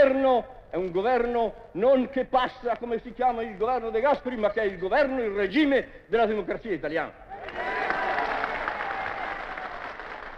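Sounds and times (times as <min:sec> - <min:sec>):
speech: 0:00.0 - 0:07.8
applause from crowd of farmers: 0:07.3 - 0:10.3.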